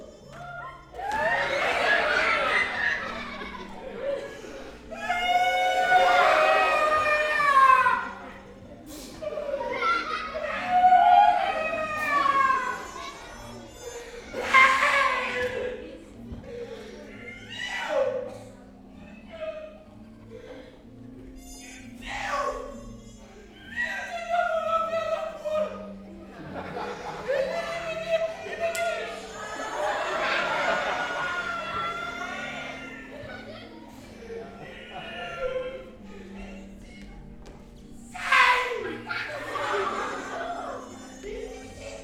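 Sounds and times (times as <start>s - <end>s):
clown performing a show: 0.0s - 15.9s, 21.3s - 37.1s, 38.0s - 42.0s
children's voices: 0.0s - 42.0s
music: 0.0s - 42.0s
laughter: 0.6s - 4.9s, 8.1s - 13.7s, 24.6s - 36.8s, 38.8s - 42.0s
audience reacting to the clown: 0.6s - 13.7s, 24.1s - 36.8s, 38.1s - 42.0s.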